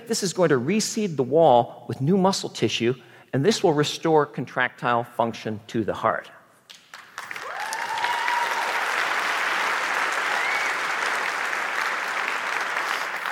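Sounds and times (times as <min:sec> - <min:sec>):
speech: 0:00.1 - 0:06.4
audience applause: 0:06.9 - 0:13.3.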